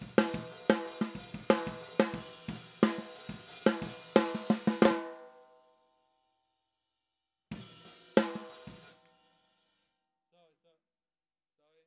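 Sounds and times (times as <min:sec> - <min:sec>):
snare drum: 0:00.0 - 0:05.4, 0:07.5 - 0:09.0.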